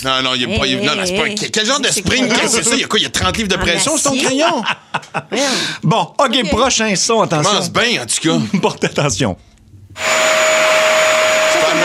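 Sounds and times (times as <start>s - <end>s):
speech: 0.0s - 10.9s
laughter: 0.5s - 5.6s, 8.3s - 9.0s
vacuum cleaner running: 10.0s - 11.8s.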